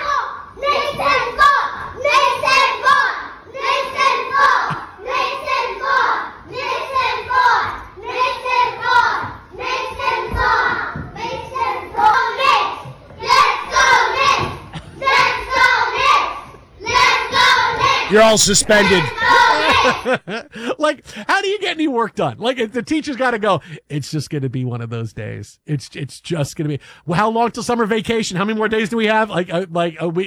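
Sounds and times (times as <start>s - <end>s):
classroom kids chanting and cheering: 0.0s - 20.2s
laughter: 4.6s - 5.1s, 14.6s - 15.3s, 18.1s - 21.3s
speech: 18.1s - 30.2s.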